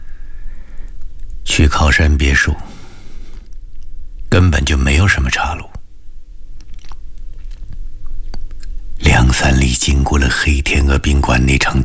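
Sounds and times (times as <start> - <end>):
low continuous hum: 0.0 - 11.8
speech: 1.5 - 2.7, 4.3 - 5.7, 9.2 - 11.8
biting and chewing fruit: 6.6 - 8.8.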